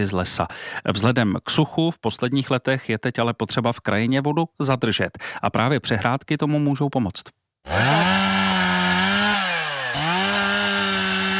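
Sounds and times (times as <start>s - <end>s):
speech: 0.0s - 8.4s
volunteers cutting pieces of wood: 7.7s - 11.3s.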